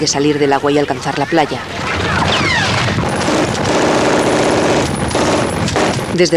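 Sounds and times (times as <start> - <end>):
speech: 0.0 - 2.6, 6.2 - 6.3
German machine gun fire on a beach: 2.4 - 6.3.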